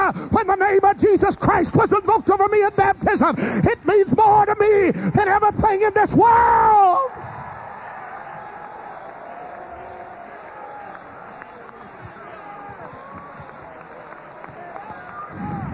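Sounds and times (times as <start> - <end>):
speech: 0.4 - 7.4
church congregation clapping hands in praise during a sermon: 7.6 - 15.7.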